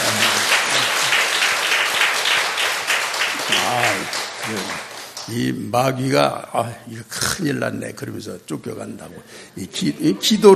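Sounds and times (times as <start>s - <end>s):
audience applauding: 0.0s - 5.4s
speech: 5.3s - 10.5s.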